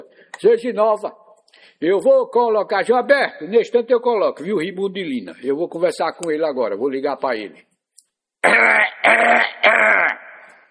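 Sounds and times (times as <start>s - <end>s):
speech: 0.4s - 1.2s, 1.8s - 7.7s, 8.4s - 10.0s
person clearing throat: 8.4s - 10.6s.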